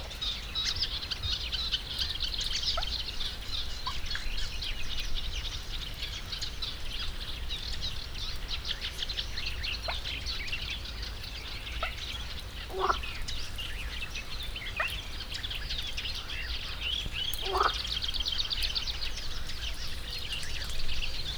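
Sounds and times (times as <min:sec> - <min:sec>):
birds at the Hortobágy fish ponds: 0:00.0 - 0:21.3
gentle breeze at the Hortobágy fish ponds: 0:00.0 - 0:21.3
pond frog at the Hortobágy fish ponds: 0:12.7 - 0:13.1, 0:17.4 - 0:18.1.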